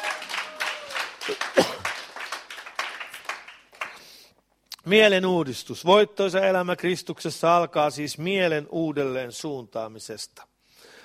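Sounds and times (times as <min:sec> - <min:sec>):
audience clapping: 0:00.0 - 0:04.2
speech: 0:01.3 - 0:01.8, 0:04.9 - 0:10.5.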